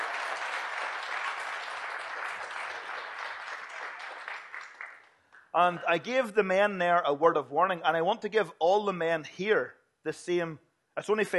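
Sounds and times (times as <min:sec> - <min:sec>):
crowd applauding: 0:00.0 - 0:05.5
speech: 0:05.6 - 0:11.3.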